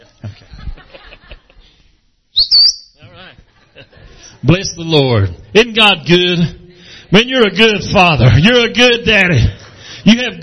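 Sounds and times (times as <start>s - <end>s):
murmured laughter: 0.0s - 1.8s, 3.4s - 4.4s
person whistling: 2.4s - 3.0s
speech: 3.8s - 10.4s.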